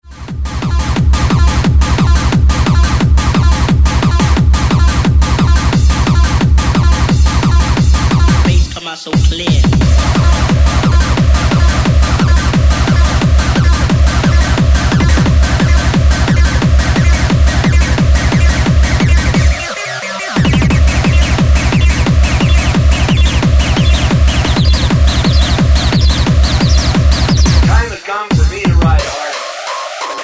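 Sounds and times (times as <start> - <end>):
bass: 0.0 - 29.5.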